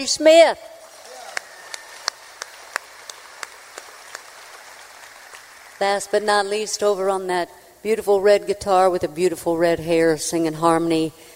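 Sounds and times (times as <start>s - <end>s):
speech: 0.0s - 0.8s, 5.8s - 11.3s
audience applause: 0.8s - 6.2s.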